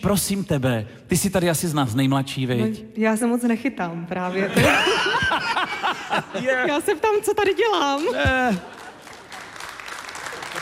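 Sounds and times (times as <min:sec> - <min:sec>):
speech: 0:00.0 - 0:08.8
laughter: 0:04.2 - 0:07.2, 0:08.0 - 0:09.5
lukewarm audience applause at a televised entertainment show: 0:07.6 - 0:10.6.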